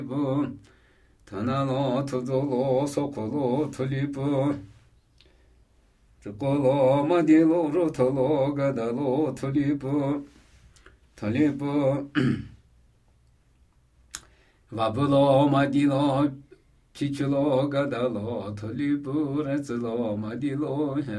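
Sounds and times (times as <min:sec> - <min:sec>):
Namuyi Tibetan ritual chanting: 0:00.0 - 0:04.9, 0:06.2 - 0:10.5, 0:11.1 - 0:12.3, 0:14.7 - 0:21.1.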